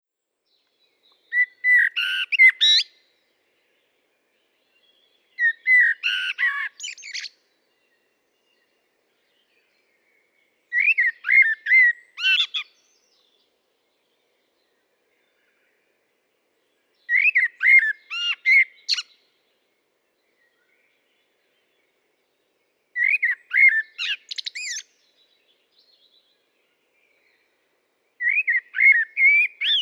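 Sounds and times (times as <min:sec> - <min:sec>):
common blackbird singing: 0:00.5 - 0:03.0, 0:04.4 - 0:13.5, 0:16.9 - 0:19.4, 0:23.0 - 0:27.6, 0:28.2 - 0:29.7.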